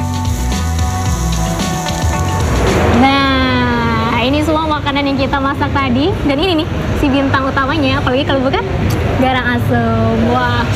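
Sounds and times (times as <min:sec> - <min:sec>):
wok sizzling as food fries over high flame: 0:00.0 - 0:05.0
sustained musical tones: 0:01.4 - 0:04.4
speech: 0:04.8 - 0:10.7.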